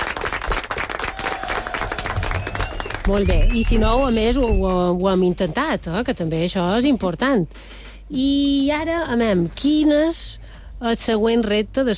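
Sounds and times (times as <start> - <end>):
group clapping in a music lesson after a scales exercise: 0.0 - 3.9
speech: 3.1 - 11.9.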